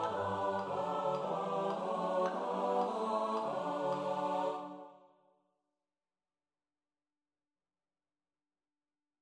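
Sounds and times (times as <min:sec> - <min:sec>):
SATB four-part choir singing: 0:00.0 - 0:05.1.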